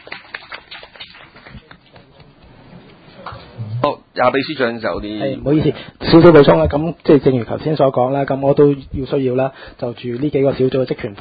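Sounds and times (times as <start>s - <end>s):
audience applause: 0.0s - 2.4s
speech: 3.8s - 11.1s.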